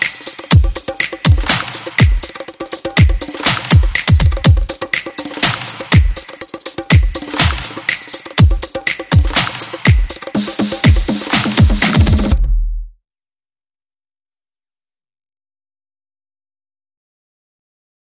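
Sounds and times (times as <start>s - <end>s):
drum: 0.0s - 12.9s.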